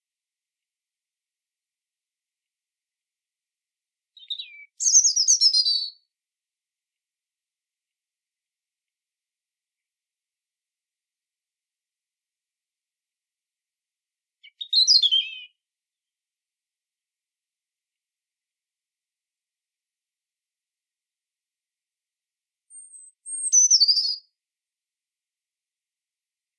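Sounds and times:
European robin singing: 4.2 - 6.0, 14.4 - 15.6, 22.7 - 24.2.

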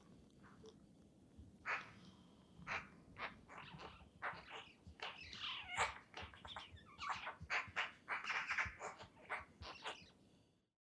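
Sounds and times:
Eurasian magpie chattering: 1.6 - 2.1, 2.6 - 10.1.

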